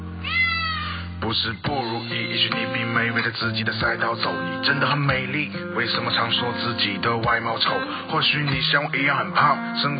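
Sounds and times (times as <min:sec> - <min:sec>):
cat meowing: 0:00.2 - 0:01.1
speech: 0:01.3 - 0:09.9.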